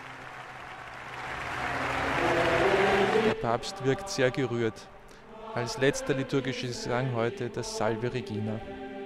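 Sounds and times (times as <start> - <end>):
crowd applause: 0.0 - 3.4
speech: 3.4 - 8.9.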